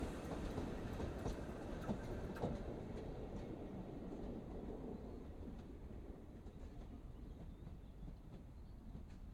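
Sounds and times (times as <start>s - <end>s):
rail clatter: 0.0s - 4.8s
steam train passing by slowly, chuffing: 0.0s - 9.2s.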